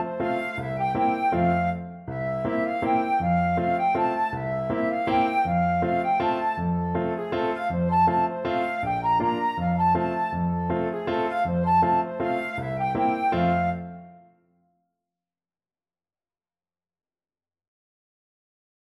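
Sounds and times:
flute: 0.0s - 14.4s.

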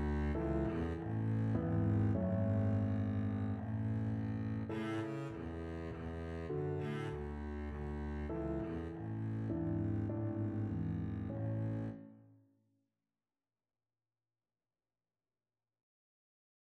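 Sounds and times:
minuet on double bass: 0.0s - 12.0s.

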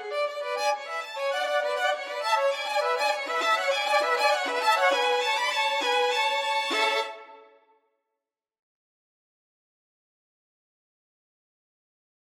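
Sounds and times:
violin duet: 0.0s - 7.6s.

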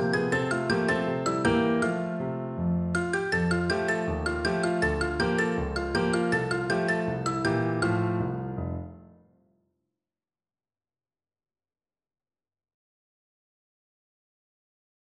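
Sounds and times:
xylophone: 0.0s - 2.2s, 3.0s - 8.6s.

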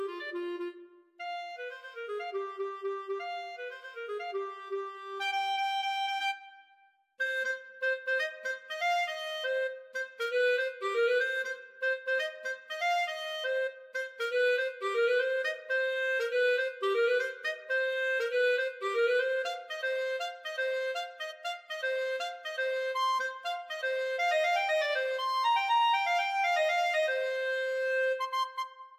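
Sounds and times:
clarinet playing funk study: 0.0s - 6.4s, 7.2s - 28.8s.

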